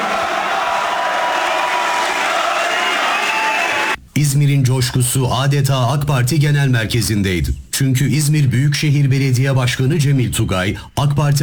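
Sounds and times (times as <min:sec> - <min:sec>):
crowd cheering in a packed hall at an AK Party gathering: 0:00.0 - 0:04.0
speech: 0:04.2 - 0:11.4.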